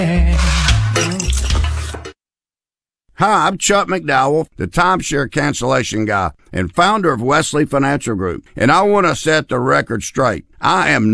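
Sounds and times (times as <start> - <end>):
pots and utensils clattering while lunch is cooked: 0.4 - 2.2
speech: 3.2 - 11.1.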